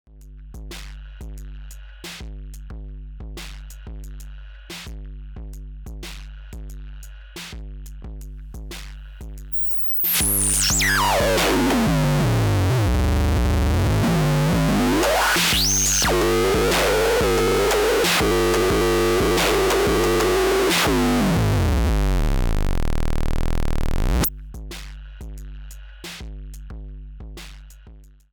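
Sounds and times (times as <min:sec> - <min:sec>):
VCF distortion filter feedback: 0:09.5 - 0:24.3.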